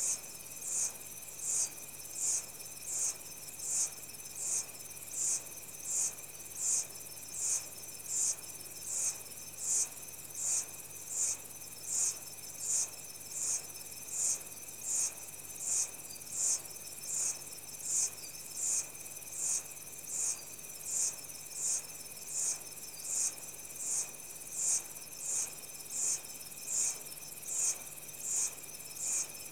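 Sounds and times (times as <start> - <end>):
insects in tropical rainforest in Central Africa Republic: 0.0 - 29.5.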